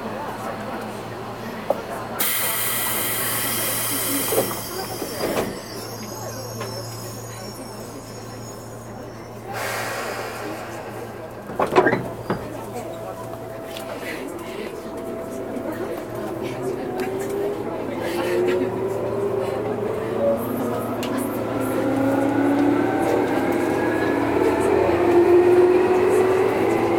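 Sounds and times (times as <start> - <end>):
running sound inside a Tobu 20000 series local train: 0.0 - 26.9
clunks: 11.4 - 13.1.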